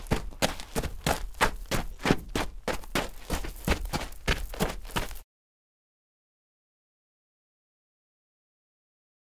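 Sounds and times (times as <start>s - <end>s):
foley footsteps on dirt: 0.0s - 5.2s.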